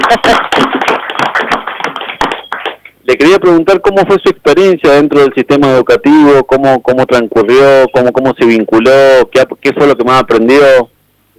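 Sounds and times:
applause sound effect: 0:00.0 - 0:02.9
speech: 0:00.1 - 0:00.7, 0:03.2 - 0:11.3.

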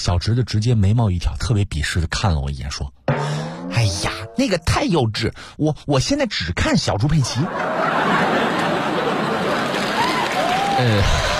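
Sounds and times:
speech: 0:00.0 - 0:03.0, 0:03.8 - 0:08.5, 0:10.8 - 0:11.3
people laughing: 0:07.2 - 0:11.3
crowd clapping: 0:07.9 - 0:11.3.

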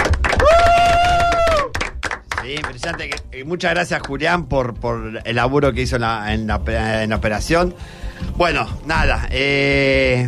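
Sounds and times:
applause: 0:00.0 - 0:03.3
speech: 0:02.5 - 0:10.2.

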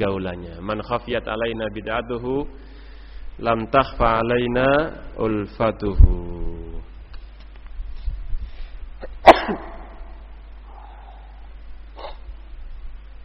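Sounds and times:
speech: 0:00.0 - 0:02.7, 0:03.4 - 0:06.3
steady low hum: 0:01.2 - 0:13.2
sneeze: 0:09.0 - 0:10.1, 0:12.0 - 0:12.3.

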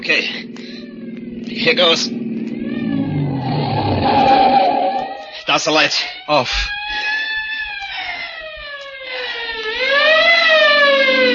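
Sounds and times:
speech: 0:00.0 - 0:00.6, 0:01.6 - 0:02.2, 0:05.5 - 0:06.8
car engine droning while driving toward a bend in the road: 0:00.0 - 0:05.5, 0:08.6 - 0:11.3
thin whine: 0:00.0 - 0:05.7, 0:10.5 - 0:11.3.

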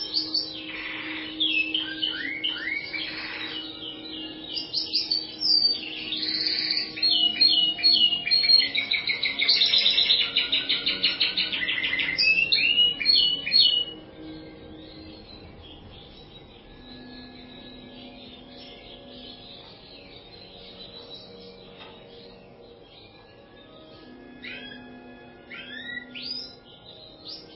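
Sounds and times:
bird song with high chirps, down-slurred whistles and rattled trills: 0:00.0 - 0:27.5.

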